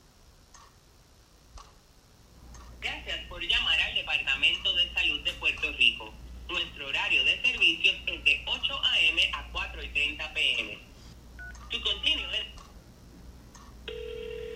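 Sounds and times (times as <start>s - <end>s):
person talking: 2.8s - 10.9s, 11.7s - 12.6s
telephone keypad tones dialing government agencies: 11.4s - 11.7s, 13.9s - 14.5s.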